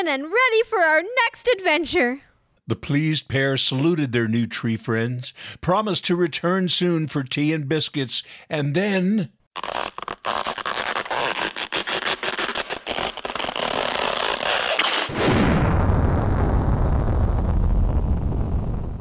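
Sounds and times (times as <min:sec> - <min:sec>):
speech: 0:00.0 - 0:10.4
crackling rumbling bursts of a spaceship launch effect: 0:09.6 - 0:19.0.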